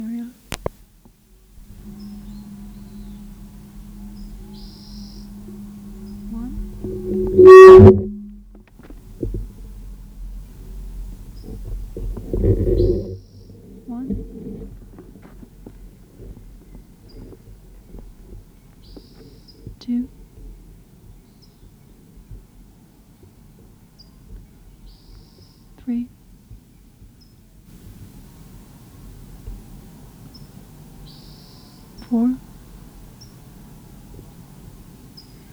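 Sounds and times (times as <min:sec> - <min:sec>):
low rumble of wind-like noise: 0:00.0 - 0:19.4, 0:27.7 - 0:35.5
bird singing brief high whistled phrases: 0:01.6 - 0:08.3, 0:09.6 - 0:13.6, 0:27.8 - 0:35.5.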